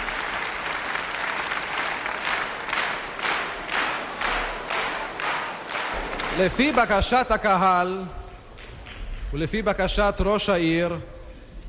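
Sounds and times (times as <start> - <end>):
stormy audience applause: 0.0 - 7.5
speech: 6.4 - 8.2, 9.3 - 11.1.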